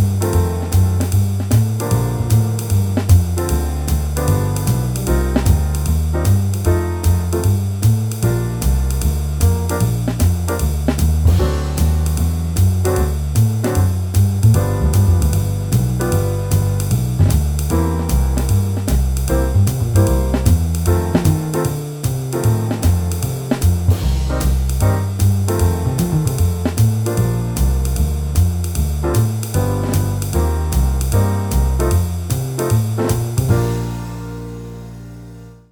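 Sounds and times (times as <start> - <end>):
full musical accompaniment: 0.0 - 35.7.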